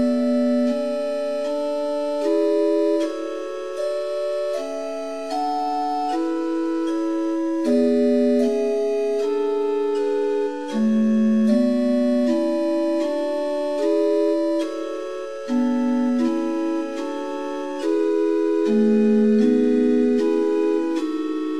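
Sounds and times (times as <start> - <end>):
liturgical organ in equal temperament with Rohr flute stop: 0.0 - 21.5.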